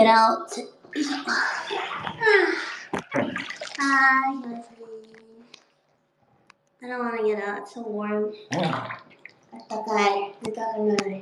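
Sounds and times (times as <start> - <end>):
speech: 0.0 - 4.8, 6.8 - 11.2
water splashing in a bath as someone washes their face: 0.8 - 4.6, 8.5 - 10.2.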